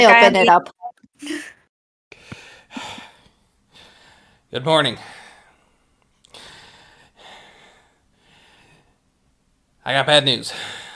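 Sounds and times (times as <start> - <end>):
speech: 0.0 - 1.6, 4.5 - 5.2, 9.8 - 10.9
heavy breathing: 2.2 - 9.0, 10.5 - 10.9.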